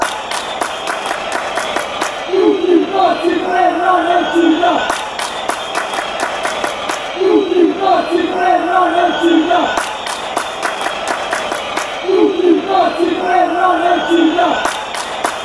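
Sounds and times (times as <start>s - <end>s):
chanting: 0.0s - 15.4s.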